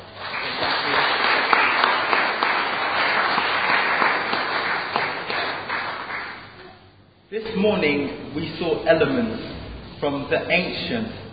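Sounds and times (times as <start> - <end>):
audience applause: 0.0 - 6.6
speech: 7.6 - 11.2.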